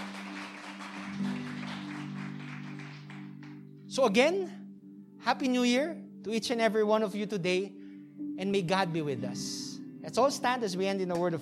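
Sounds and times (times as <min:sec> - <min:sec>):
audience clapping: 0:00.0 - 0:03.6
speech: 0:04.0 - 0:04.6, 0:05.2 - 0:07.8, 0:08.4 - 0:11.4.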